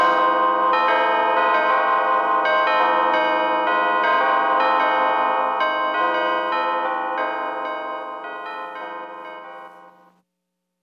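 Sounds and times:
church bells pealing: 0.0 - 10.1.

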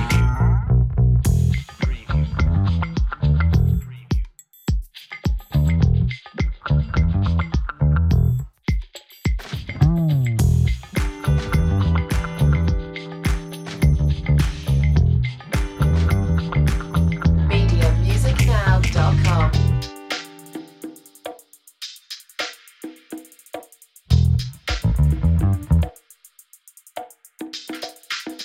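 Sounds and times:
bouncy bass: 0.0 - 4.3, 5.5 - 8.6, 9.6 - 20.0, 24.1 - 26.0
playful and funny bluesy track: 0.0 - 4.3, 5.4 - 8.6, 9.4 - 21.2, 24.1 - 25.9.

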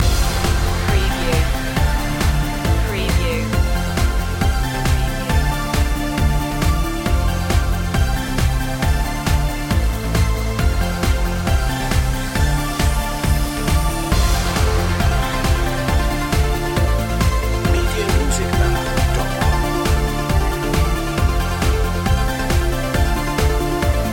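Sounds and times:
music loop: 0.0 - 7.9, 8.5 - 24.1.

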